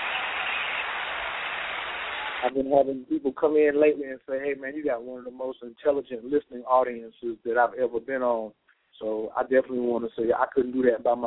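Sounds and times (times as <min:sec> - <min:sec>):
audience applause: 0:00.0 - 0:02.5
speech: 0:02.4 - 0:11.2.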